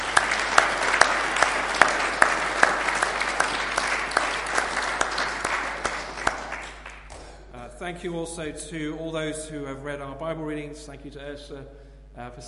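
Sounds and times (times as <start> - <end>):
audience applause in a church: 0.0 - 7.3
speech: 7.9 - 12.4.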